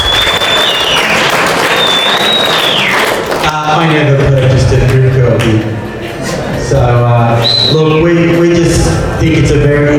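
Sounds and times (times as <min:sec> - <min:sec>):
audience clapping hands: 0:00.0 - 0:05.7
speech: 0:03.8 - 0:05.8, 0:06.7 - 0:09.9.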